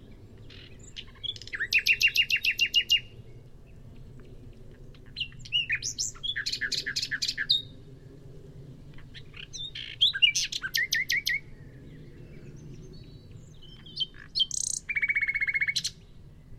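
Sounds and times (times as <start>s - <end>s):
common nightingale singing: 0.4s - 3.1s, 5.0s - 7.7s, 9.0s - 16.1s.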